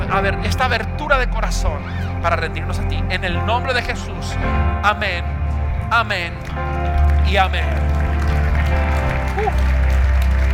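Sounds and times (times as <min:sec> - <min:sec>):
speech: 0:00.2 - 0:08.0, 0:08.7 - 0:09.8
audience applause: 0:06.4 - 0:10.5.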